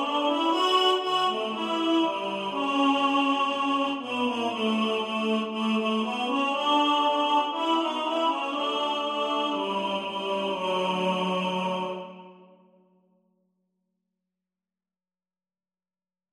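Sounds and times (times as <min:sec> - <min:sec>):
tenor singing: 0:00.0 - 0:12.5.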